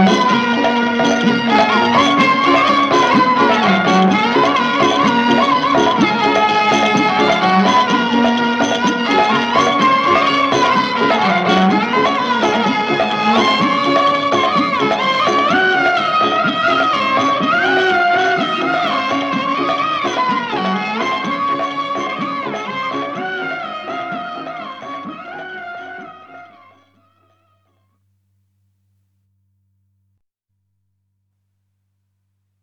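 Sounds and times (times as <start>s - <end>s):
title theme music: 0.0s - 25.5s.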